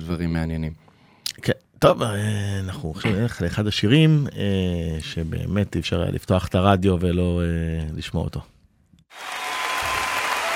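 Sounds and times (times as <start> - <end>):
speech: 0.1 - 8.5
audience applause: 9.1 - 10.5.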